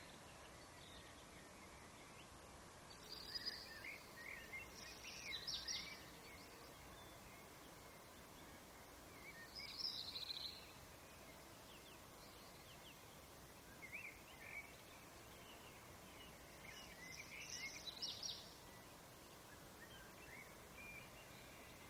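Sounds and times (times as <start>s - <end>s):
morning ambience: 0.0s - 21.8s.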